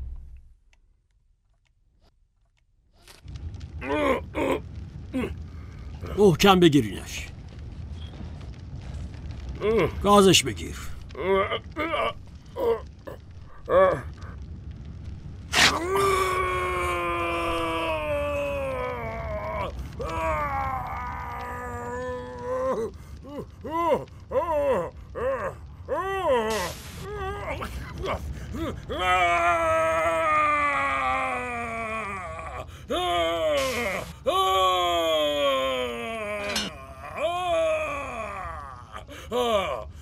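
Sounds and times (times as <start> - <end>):
person groaning and crying out in pain: 3.8 - 5.4, 11.1 - 14.3, 15.5 - 39.9
speech: 6.1 - 7.3, 9.6 - 12.9, 13.7 - 14.1, 28.1 - 30.0.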